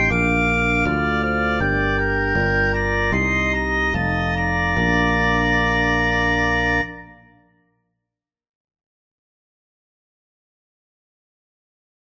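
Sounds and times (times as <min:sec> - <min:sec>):
organ in B-flat major: 0:00.0 - 0:07.3
piano in B-flat major: 0:00.0 - 0:07.3
bass in B-flat major: 0:00.0 - 0:07.4.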